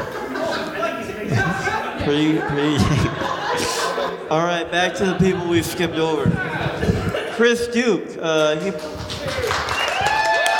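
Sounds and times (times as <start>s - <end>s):
laughter: 0.0s - 7.8s
speech: 2.1s - 9.5s
audience applause at a stand-up comedy show: 8.8s - 10.5s
audience whooping at a stand-up comedy show: 9.3s - 10.5s.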